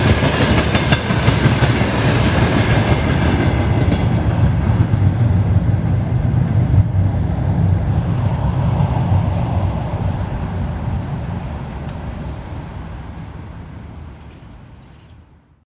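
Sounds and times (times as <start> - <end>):
train station ambience: 0.0 - 15.6.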